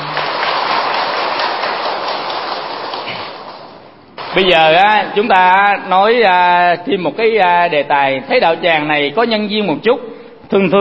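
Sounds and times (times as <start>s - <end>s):
audience applause: 0.0s - 4.6s
speech: 4.4s - 10.7s.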